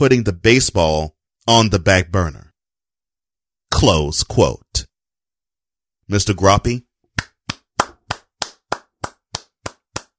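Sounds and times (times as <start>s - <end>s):
speech: 0.0s - 2.4s, 3.7s - 4.9s, 6.1s - 6.9s
person clapping hands: 7.1s - 10.1s.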